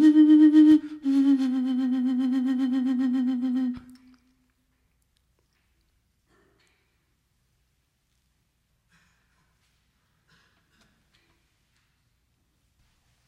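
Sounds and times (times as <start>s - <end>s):
dove ocarina: 0.0s - 4.4s.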